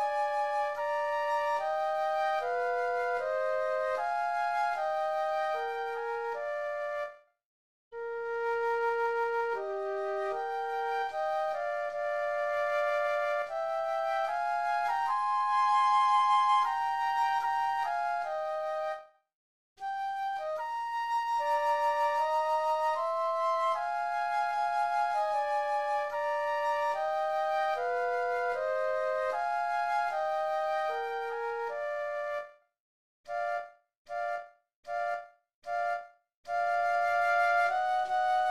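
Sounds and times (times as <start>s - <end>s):
classical adagio flute duet: 0.0s - 7.2s, 8.0s - 19.1s, 19.8s - 32.6s, 33.3s - 38.4s.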